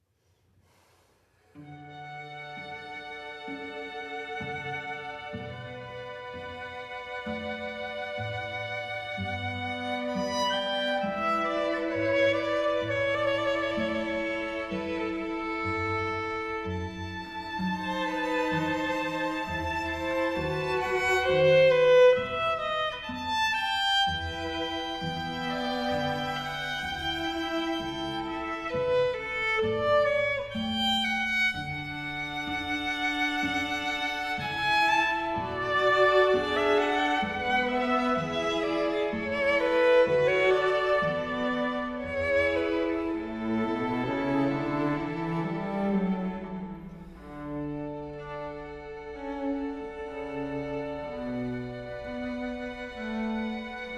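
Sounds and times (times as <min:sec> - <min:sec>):
quartet playing an aria: 0:02.4 - 0:53.9.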